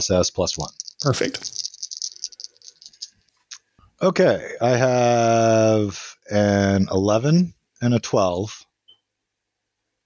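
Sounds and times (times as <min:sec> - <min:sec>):
speech: 0:00.0 - 0:01.6, 0:04.0 - 0:08.7
handful of dice being rolled: 0:00.4 - 0:03.2.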